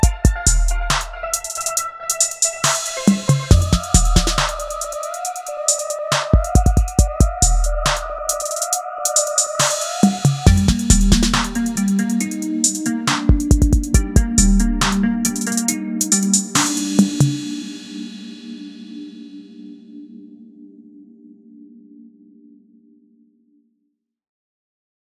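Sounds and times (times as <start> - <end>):
atmospheric trap music at 138 BPM: 0.0 - 19.3.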